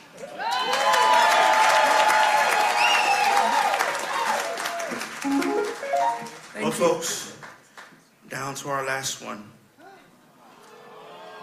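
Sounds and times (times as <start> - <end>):
audience clapping: 0.1 - 8.1
speech: 6.8 - 7.3, 8.3 - 9.6.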